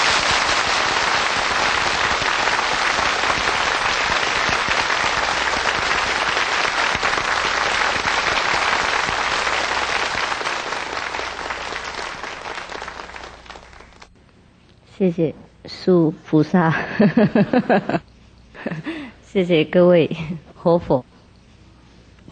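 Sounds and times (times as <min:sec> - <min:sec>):
large audience applause: 0:00.0 - 0:14.1
speech: 0:15.0 - 0:18.0, 0:19.4 - 0:21.1
laughter: 0:16.7 - 0:18.0, 0:18.6 - 0:19.1.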